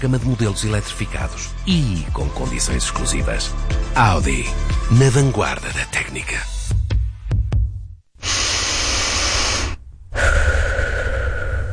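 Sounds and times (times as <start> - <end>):
speech: 0.0 - 6.5
person taking a deep breath of fresh air in nature: 8.2 - 11.7.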